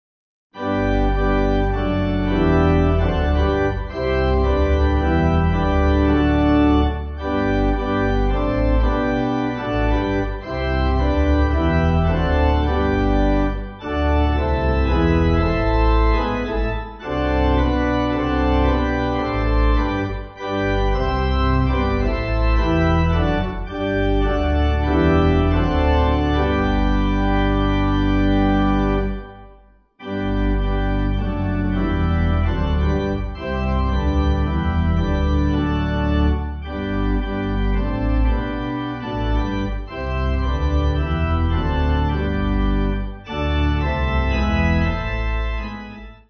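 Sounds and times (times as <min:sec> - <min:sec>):
pipe organ backing music for churches: 0:00.6 - 0:46.2.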